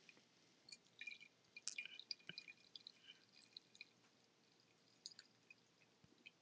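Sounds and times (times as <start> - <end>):
pot-brewed milk tea pouring from pot into cup: 0.7 - 5.7.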